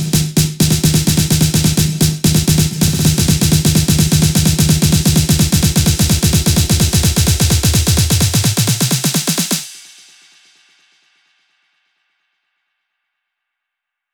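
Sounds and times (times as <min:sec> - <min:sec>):
128 BPM house electro drum fills: 0:00.0 - 0:10.6.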